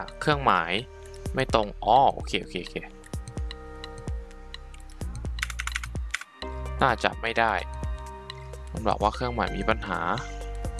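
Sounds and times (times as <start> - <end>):
speech: 0.0 - 3.0, 6.8 - 7.8, 8.7 - 10.4
steady tonal music: 0.0 - 10.7
computer keyboard key presses to save and run code: 5.4 - 6.3.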